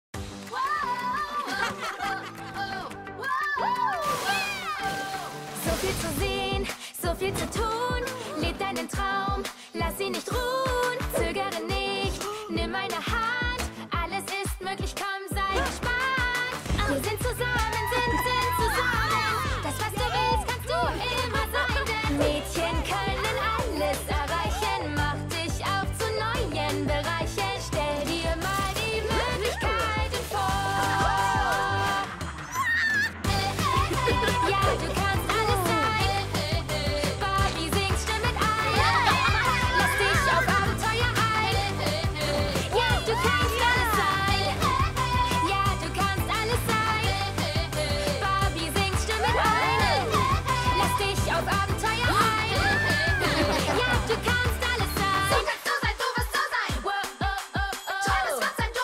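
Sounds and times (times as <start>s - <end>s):
karaoke singing: 0.5s - 58.8s
laughter: 1.1s - 3.0s, 16.7s - 24.9s, 29.0s - 44.7s, 49.1s - 55.4s.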